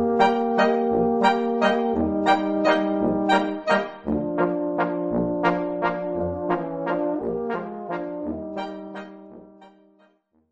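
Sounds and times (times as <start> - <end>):
Kapelle band playing a waltz: 0.2 - 7.6, 8.6 - 9.2.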